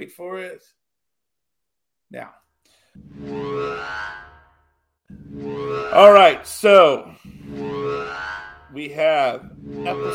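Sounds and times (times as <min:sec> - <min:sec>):
speech: 0:00.0 - 0:00.8, 0:02.1 - 0:04.3, 0:05.1 - 0:10.1
black alert klaxon sound effect: 0:03.0 - 0:04.5, 0:05.1 - 0:08.8, 0:09.4 - 0:10.1.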